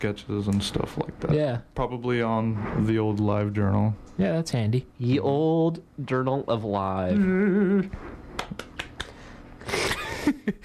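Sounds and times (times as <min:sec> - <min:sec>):
speech: 0:00.0 - 0:08.7
scattered hand claps: 0:08.4 - 0:09.2.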